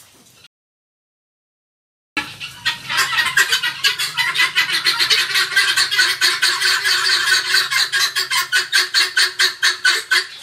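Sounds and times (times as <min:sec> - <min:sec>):
helmeted guineafowl rasping calls: 0:02.2 - 0:10.4.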